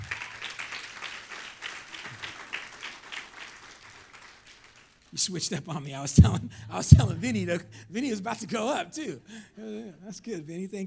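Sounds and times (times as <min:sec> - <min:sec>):
people clapping hands: 0:00.0 - 0:05.2
speech: 0:05.2 - 0:10.8.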